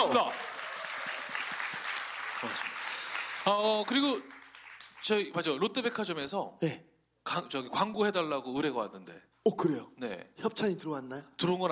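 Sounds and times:
speech: 0.0s - 0.5s, 2.4s - 2.7s, 3.4s - 4.4s, 5.0s - 11.7s
audience applause: 0.0s - 5.1s.

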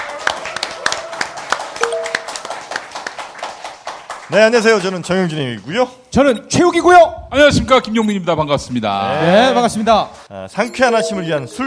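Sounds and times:
cheering and applause: 0.0s - 4.4s
speech: 4.3s - 11.6s.

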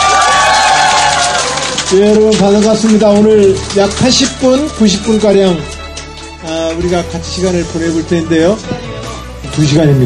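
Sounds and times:
crowd shouting and whooping: 0.0s - 2.2s
crowd applauding: 0.0s - 7.1s
speech: 1.9s - 5.8s, 6.4s - 8.8s, 9.4s - 10.0s.

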